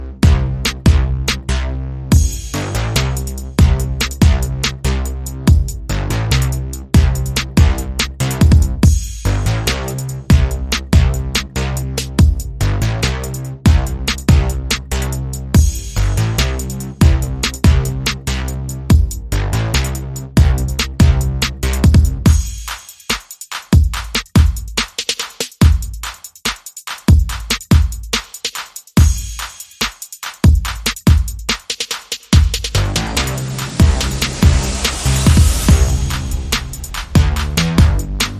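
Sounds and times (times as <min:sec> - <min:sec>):
bass: 0:00.0 - 0:22.5, 0:32.6 - 0:38.3
drums: 0:00.0 - 0:38.3
sound effects: 0:32.8 - 0:38.3.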